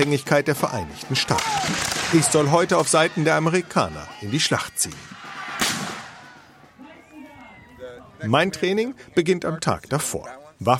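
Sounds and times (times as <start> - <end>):
speech: 0.0 - 5.2, 8.2 - 10.7
musket shot during weapons training: 5.6 - 6.1.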